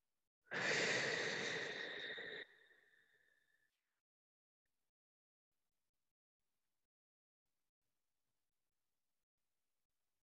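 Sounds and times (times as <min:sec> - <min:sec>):
deep breath in a guided meditation: 0:00.5 - 0:03.6.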